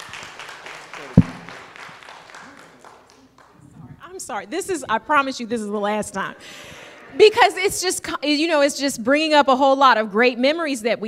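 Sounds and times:
round of applause: 0:00.0 - 0:03.8
speech: 0:04.2 - 0:11.0.

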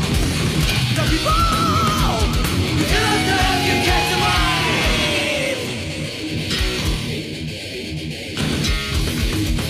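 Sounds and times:
heavy metal song: 0:00.0 - 0:09.6
shouted vocals: 0:01.0 - 0:06.2.

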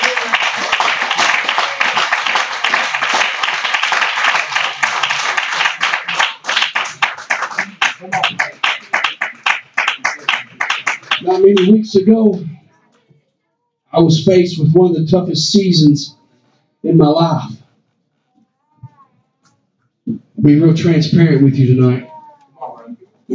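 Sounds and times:
crowd clapping: 0:00.0 - 0:11.9
speech: 0:11.6 - 0:12.5, 0:14.0 - 0:16.2, 0:16.9 - 0:17.6, 0:20.4 - 0:22.1.

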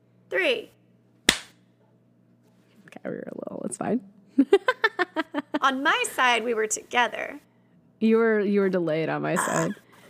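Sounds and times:
speech: 0:00.3 - 0:00.8, 0:03.0 - 0:04.8, 0:05.6 - 0:09.8
single sync hand clap: 0:01.3 - 0:01.6.

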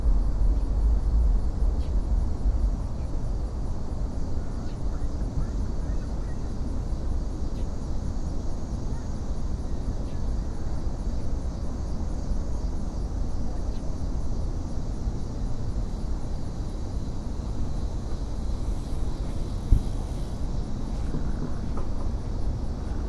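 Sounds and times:
faint high whine: 0:00.0 - 0:23.0
low rumble of traffic or aircraft beside the Anacostia River: 0:00.0 - 0:23.0.

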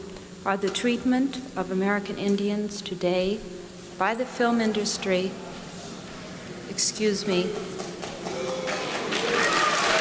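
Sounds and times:
speech: 0:00.4 - 0:05.5, 0:06.7 - 0:07.9
crowd clapping: 0:07.6 - 0:09.9
crowd booing: 0:08.0 - 0:09.9.

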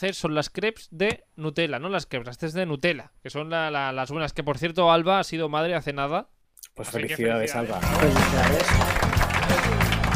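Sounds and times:
speech: 0:00.0 - 0:09.9
applause: 0:07.7 - 0:10.1.

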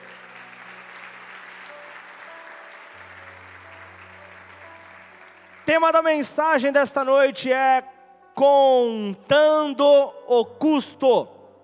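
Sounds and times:
audience applause: 0:00.0 - 0:06.4
speech: 0:05.8 - 0:11.4.

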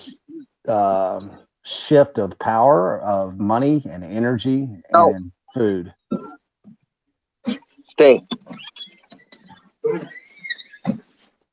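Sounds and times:
speech: 0:00.7 - 0:06.4, 0:07.4 - 0:08.7, 0:09.8 - 0:10.2
two big dogs whining and yelping while scuffling: 0:07.4 - 0:11.4.

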